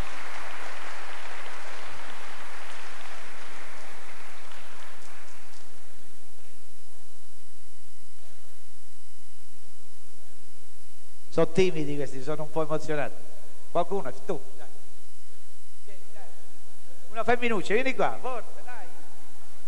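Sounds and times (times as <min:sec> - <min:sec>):
applause: 0:00.0 - 0:05.8
speech: 0:11.4 - 0:14.6, 0:17.2 - 0:18.5.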